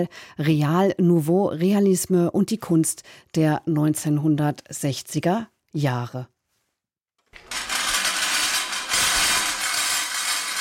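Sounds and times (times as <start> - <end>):
speech: 0.0 - 6.3
clattering motorized scrap-metal kinetic sculpture: 7.2 - 10.6.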